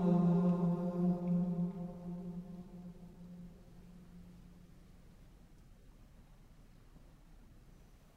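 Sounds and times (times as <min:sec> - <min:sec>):
Easter antiphon after Compline: 0:00.0 - 0:04.2.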